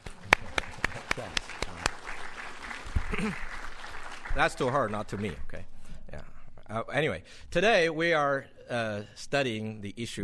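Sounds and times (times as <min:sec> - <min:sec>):
applause: 0:00.0 - 0:05.4
speech: 0:03.2 - 0:03.5, 0:04.4 - 0:05.7, 0:06.7 - 0:10.2.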